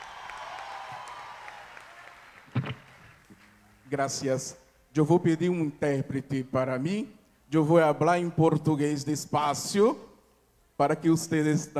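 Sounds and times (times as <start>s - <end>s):
audience applause: 0.0s - 3.4s
speech: 3.9s - 10.1s, 10.8s - 11.7s.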